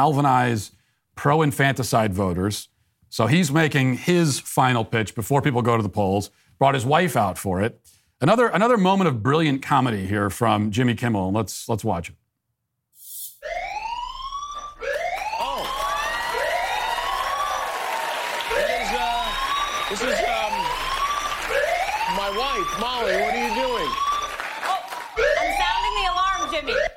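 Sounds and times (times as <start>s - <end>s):
speech: 0.0s - 12.2s, 19.9s - 20.2s
alarm siren sounding: 13.4s - 26.9s.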